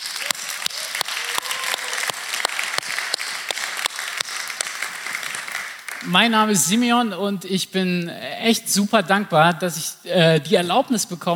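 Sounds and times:
church audience applause: 0.0 - 6.1
speech: 6.0 - 11.3.

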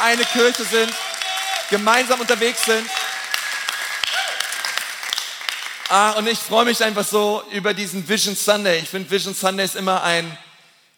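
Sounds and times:
audience applause: 0.0 - 6.4
speech: 0.1 - 3.0, 5.9 - 10.5.

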